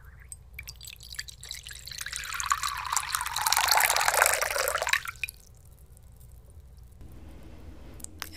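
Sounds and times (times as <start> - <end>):
water poured into a bowl: 0.3 - 6.4.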